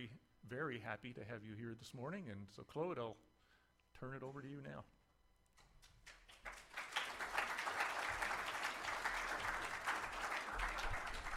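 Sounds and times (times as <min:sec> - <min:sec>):
speech: 0:00.0 - 0:03.3, 0:04.0 - 0:05.0
audience applause: 0:06.3 - 0:11.3.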